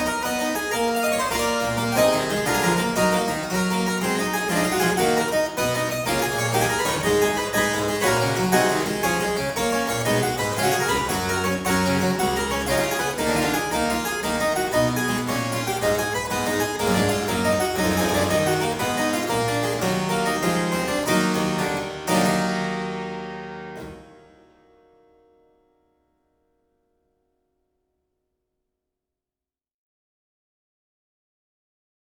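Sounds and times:
harpsichord piece: 0.0 - 24.7.

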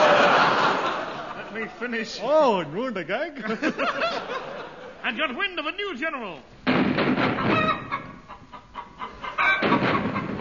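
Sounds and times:
laughter: 0.0 - 2.0, 3.2 - 5.2
speech: 1.6 - 7.6
chickens clucking: 7.2 - 10.3.

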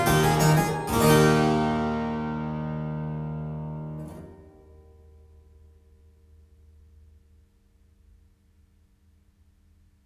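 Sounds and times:
galliard on harpsichord: 0.0 - 4.6.

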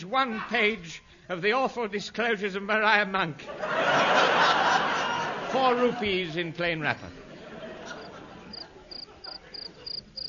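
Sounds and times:
speech: 0.0 - 4.9, 5.5 - 7.2
laughter: 3.4 - 10.2
cricket chirping: 8.0 - 10.2.

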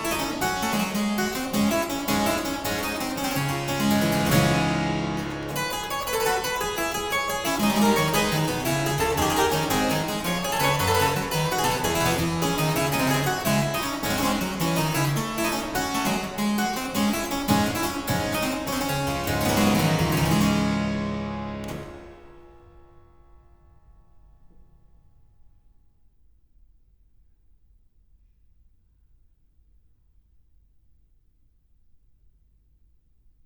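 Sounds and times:
harpsichord gigue in D minor: 0.0 - 23.4.

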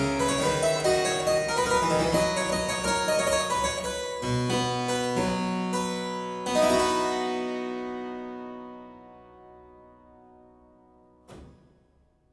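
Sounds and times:
harpsichord courante in C major: 0.0 - 8.3.

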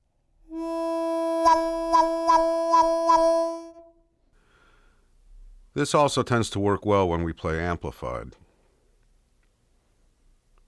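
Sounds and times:
harmonica chord cut off by rapidly closing cupped hands: 0.5 - 4.0
speech: 5.8 - 8.5.

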